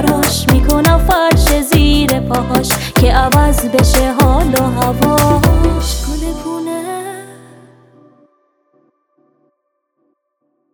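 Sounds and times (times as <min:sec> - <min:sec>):
Iranian woman singing: 0:00.0 - 0:08.2.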